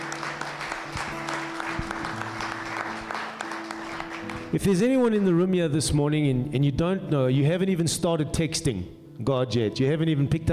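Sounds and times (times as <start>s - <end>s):
audience applause: 0.0s - 4.5s
speech: 4.5s - 10.5s.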